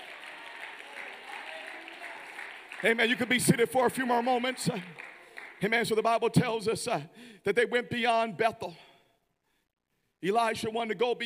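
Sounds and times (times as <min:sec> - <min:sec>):
audience clapping: 0:00.0 - 0:06.4
speech: 0:02.8 - 0:05.0, 0:05.6 - 0:08.9, 0:10.2 - 0:11.2.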